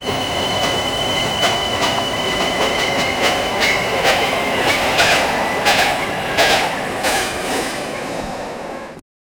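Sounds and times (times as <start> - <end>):
Christmas steam locomotive: 0.0 - 9.0.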